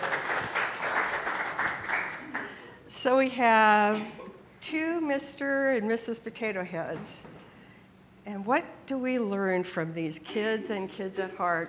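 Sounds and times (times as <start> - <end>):
audience applause: 0.0 - 2.7
speech: 3.0 - 7.4, 8.2 - 11.6.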